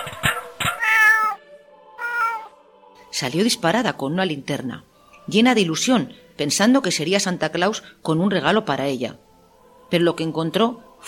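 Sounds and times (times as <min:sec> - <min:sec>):
kitten meowing: 0:00.8 - 0:01.4, 0:02.0 - 0:02.5
speech: 0:03.2 - 0:09.2, 0:09.9 - 0:11.0.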